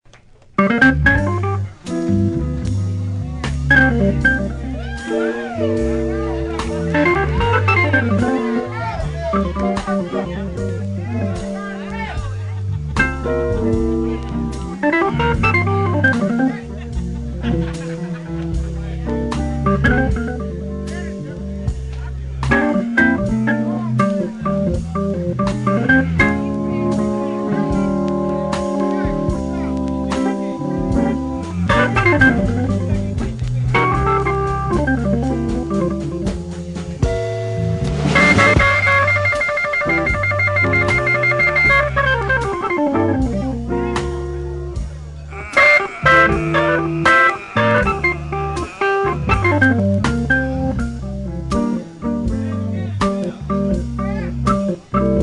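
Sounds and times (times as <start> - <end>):
basic Hammond organ: 0.6 - 55.2
laughter: 12.0 - 13.8, 15.5 - 19.2, 45.3 - 49.9.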